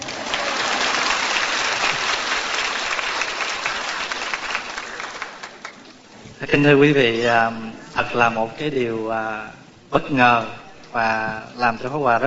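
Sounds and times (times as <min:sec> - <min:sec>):
audience applause in a hall in Houston, Texas: 0:00.0 - 0:06.0
speech: 0:06.4 - 0:12.2.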